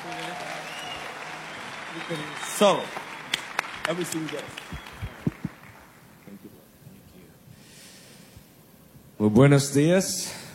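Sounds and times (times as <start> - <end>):
audience applause: 0.0 - 6.4
speech: 2.0 - 3.0, 3.9 - 4.8, 9.2 - 10.4.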